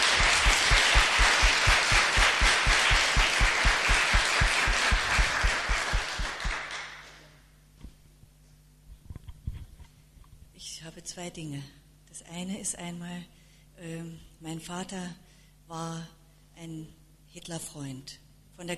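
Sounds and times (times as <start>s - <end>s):
applause: 0.0s - 7.4s
speech: 11.2s - 18.7s.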